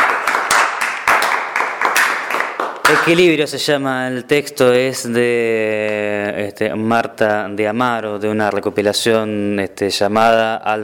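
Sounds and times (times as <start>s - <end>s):
audience applause: 0.0s - 3.0s
speech: 2.9s - 10.8s.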